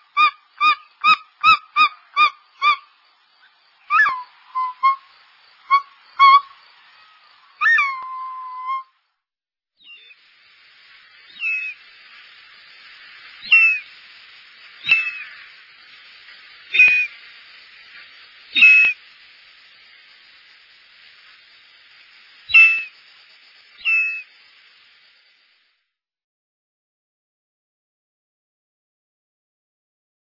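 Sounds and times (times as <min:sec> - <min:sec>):
short-toed eagle calling: 0:00.1 - 0:02.9, 0:03.9 - 0:08.9, 0:11.3 - 0:11.9, 0:13.4 - 0:14.0, 0:14.8 - 0:15.6, 0:16.6 - 0:17.3, 0:17.9 - 0:19.0, 0:22.5 - 0:23.0, 0:23.8 - 0:24.3.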